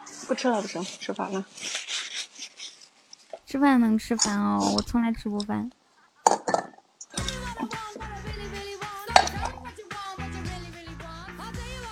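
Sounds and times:
speech: 0.3s - 1.9s, 3.5s - 5.8s
chopsticks dropping and clattering: 4.1s - 5.0s, 6.4s - 8.0s
steady tonal background: 7.2s - 9.9s.

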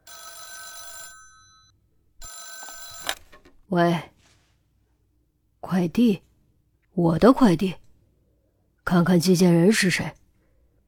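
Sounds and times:
telephone ringing: 0.0s - 3.3s
speech: 3.7s - 4.1s, 5.6s - 6.3s, 7.0s - 7.8s, 8.9s - 10.2s.

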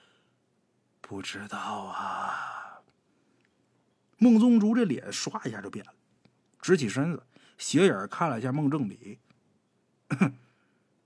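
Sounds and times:
speech: 1.1s - 2.5s, 4.2s - 6.0s, 6.6s - 9.3s, 10.1s - 10.4s
throat-clearing cough: 10.1s - 10.5s.

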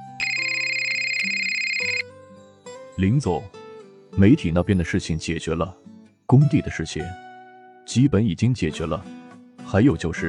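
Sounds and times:
phone ringing: 0.0s - 2.0s
speech: 3.0s - 3.6s, 4.2s - 7.2s, 7.9s - 10.2s.

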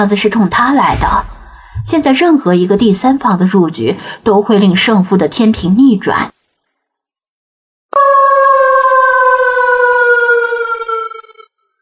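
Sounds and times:
speech: 0.0s - 6.3s
wolf howling: 7.9s - 11.5s.

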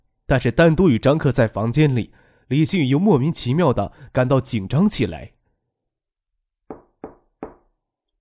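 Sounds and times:
speech: 0.3s - 5.4s
knocking on a door: 6.7s - 7.7s.

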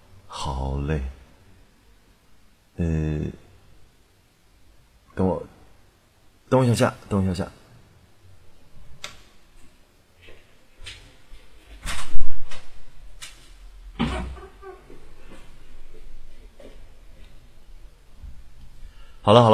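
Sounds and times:
speech: 0.6s - 1.2s, 2.8s - 3.1s, 6.6s - 7.6s, 19.3s - 19.5s
door creaking open: 13.9s - 16.7s.

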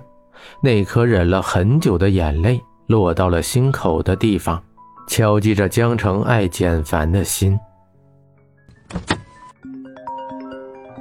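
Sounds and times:
speech: 0.6s - 7.7s, 8.9s - 9.2s
car door opening: 8.7s - 9.5s.

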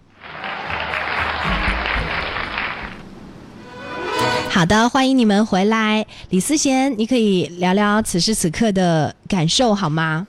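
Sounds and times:
audience applause: 0.0s - 3.1s
speech: 4.6s - 10.2s.

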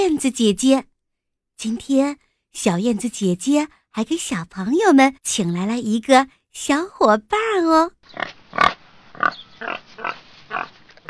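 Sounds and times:
speech: 0.0s - 0.9s, 1.6s - 10.7s
pig oinking: 8.2s - 11.0s.

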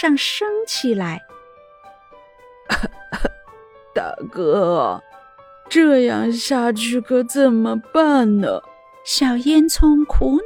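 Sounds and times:
speech: 0.0s - 1.3s, 2.7s - 3.3s, 4.0s - 5.1s, 5.7s - 10.4s
coughing: 2.7s - 4.3s.

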